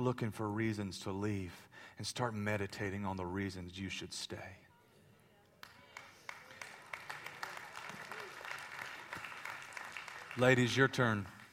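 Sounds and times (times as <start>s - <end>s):
speech: 0.0s - 4.6s, 10.4s - 11.4s
audience clapping: 5.6s - 11.5s.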